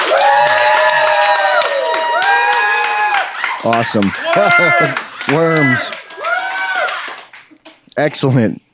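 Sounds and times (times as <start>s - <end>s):
studio audience cheering: 0.0s - 7.5s
laughter: 3.6s - 6.0s
speech: 3.6s - 6.0s, 8.0s - 8.6s.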